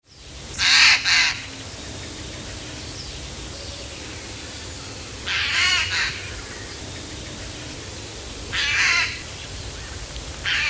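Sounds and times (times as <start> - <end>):
Eurasian jay calling: 0.6 - 1.5, 5.3 - 7.8, 8.5 - 9.2, 10.4 - 10.6.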